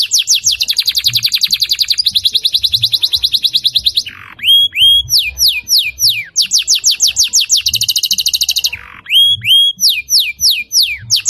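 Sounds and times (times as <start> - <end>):
lovebird chatter in konslet song style: 0.0 - 11.2.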